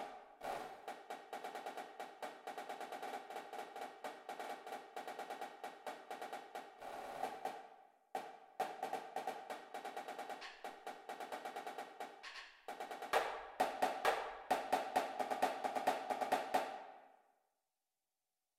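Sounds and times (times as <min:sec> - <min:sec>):
snare drum: 0:00.0 - 0:17.0
music: 0:00.0 - 0:17.2.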